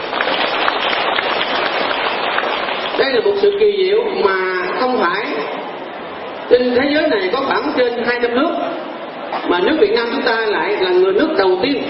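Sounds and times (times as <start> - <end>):
audience applause at a Buddhist gathering in Vietnam: 0.0 - 3.2
speech: 3.0 - 5.6, 6.5 - 11.8.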